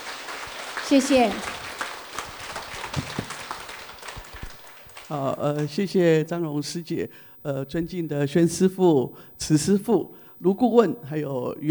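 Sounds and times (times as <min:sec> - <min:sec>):
crowd applause: 0:00.0 - 0:05.7
speech: 0:00.8 - 0:01.6, 0:05.1 - 0:11.6.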